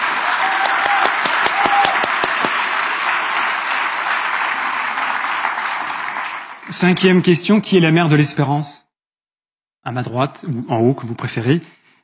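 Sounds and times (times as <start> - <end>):
audience applauding loudly: 0.0 - 7.5
speech: 6.8 - 8.8, 9.8 - 11.8.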